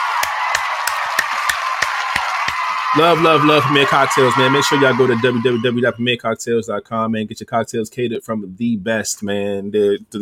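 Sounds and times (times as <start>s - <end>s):
sharp evenly spaced claps: 0.0s - 2.9s
applause: 0.0s - 5.6s
speech: 2.9s - 10.1s.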